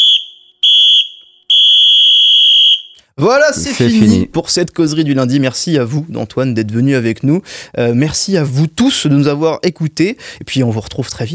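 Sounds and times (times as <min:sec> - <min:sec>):
final whistle blown: 0:00.0 - 0:03.1
speech: 0:03.2 - 0:11.3.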